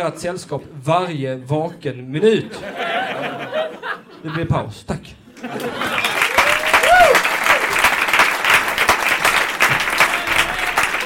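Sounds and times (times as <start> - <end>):
speech: 0.0 - 2.9, 4.2 - 6.0
laughter: 1.5 - 4.7, 5.3 - 6.6
audience applause: 5.5 - 11.0.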